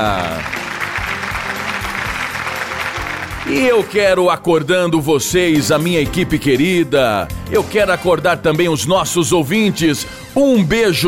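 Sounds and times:
speech: 0.0 - 0.6, 3.5 - 11.0
audience applause: 0.0 - 4.2.

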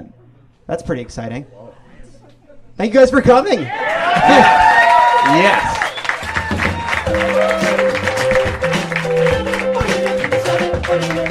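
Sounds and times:
speech: 0.7 - 1.8, 2.8 - 5.8, 7.1 - 8.3
audience applause: 3.8 - 11.2
upbeat music: 6.1 - 11.2.

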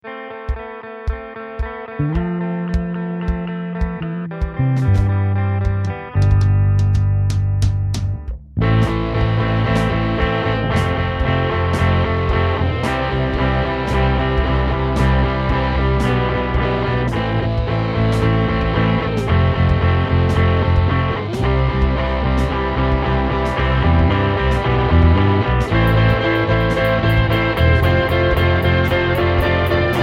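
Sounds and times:
rock piece in four-four time: 0.2 - 30.0.

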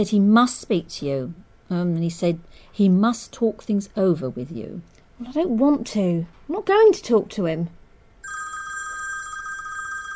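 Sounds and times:
speech: 0.0 - 7.8
telephone ringing: 8.2 - 10.1.

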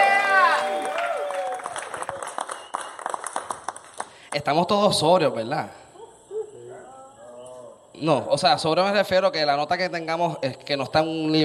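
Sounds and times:
audience applause: 0.0 - 4.2
speech: 4.4 - 5.8, 8.0 - 11.4.

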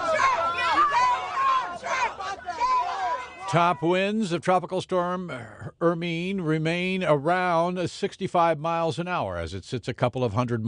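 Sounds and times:
crowd of protesters shouting outside a church: 0.0 - 4.0
speech: 3.5 - 10.6.

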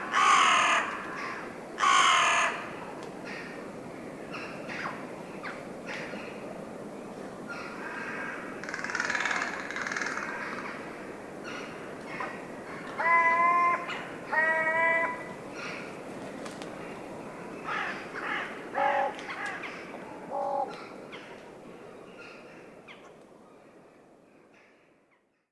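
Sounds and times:
crows waking up: 0.0 - 2.6, 7.8 - 10.7, 11.5 - 15.8, 17.7 - 20.9
rooks waking up: 0.0 - 6.4, 7.4 - 23.1.

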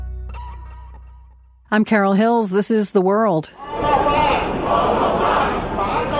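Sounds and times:
speech: 1.7 - 3.8
street protest crowd chanting: 3.6 - 6.1.

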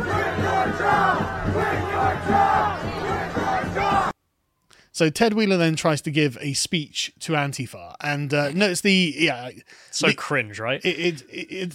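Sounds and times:
protest crowd booing: 0.0 - 4.2
speech: 5.0 - 11.7.

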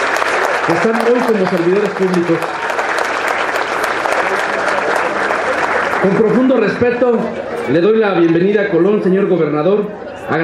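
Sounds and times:
crowd applause for the children: 0.0 - 7.9
speech: 0.7 - 2.7, 6.0 - 10.4.

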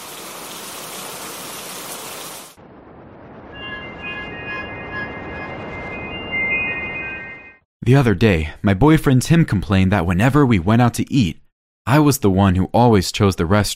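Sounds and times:
heavy rain: 0.0 - 2.6
faint sustained high tones: 3.2 - 7.6
speech: 7.9 - 13.7.

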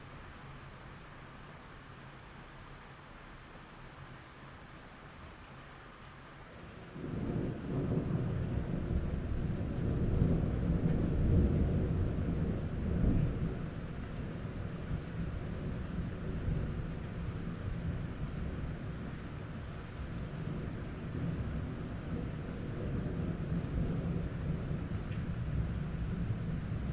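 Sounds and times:
nighttime rain: 0.0 - 26.9
thunder: 7.0 - 16.9, 20.2 - 26.9.

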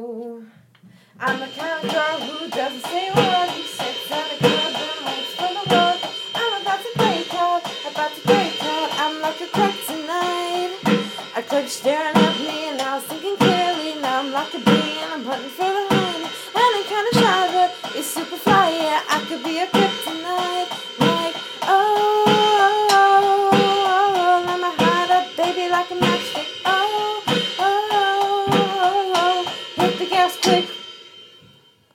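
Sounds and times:
drums: 0.6 - 31.9.

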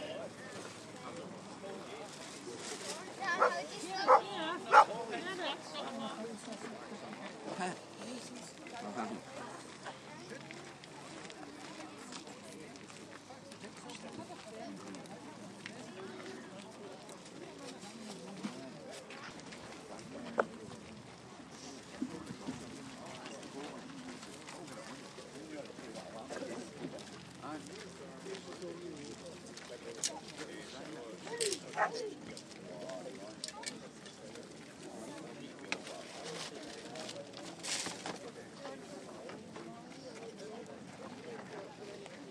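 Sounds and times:
crowd chatter at car boot sale: 0.0 - 42.2
wind: 0.0 - 42.2
dog barking: 4.1 - 4.9.

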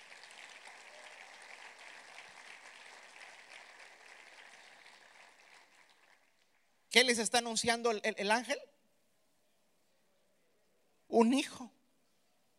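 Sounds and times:
audience applauding: 0.0 - 6.8
speech: 7.0 - 8.7, 11.2 - 11.8.

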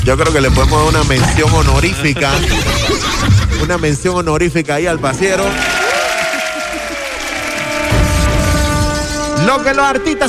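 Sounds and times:
speech: 0.1 - 5.8, 9.4 - 10.2
laughter: 1.4 - 4.0, 5.2 - 7.9
audience applause: 5.3 - 8.3.

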